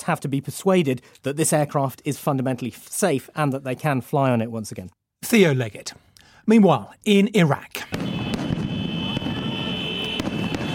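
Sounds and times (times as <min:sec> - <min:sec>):
speech: 0:00.0 - 0:08.2
security forces firing live rounds in central Baghdad: 0:07.9 - 0:10.7.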